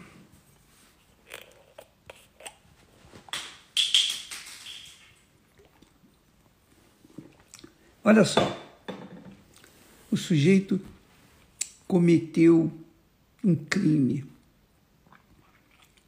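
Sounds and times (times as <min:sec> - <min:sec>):
person sipping water: 0:01.0 - 0:02.6, 0:05.4 - 0:07.9, 0:15.0 - 0:16.0
swallowing gulps: 0:05.5 - 0:07.9, 0:15.0 - 0:16.0
speech: 0:08.0 - 0:08.6, 0:10.3 - 0:11.0, 0:11.9 - 0:12.8, 0:13.4 - 0:14.3.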